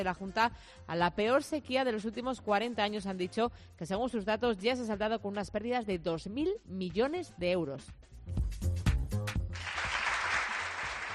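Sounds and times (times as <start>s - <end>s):
speech: 0.0s - 8.7s
applause: 9.3s - 11.1s.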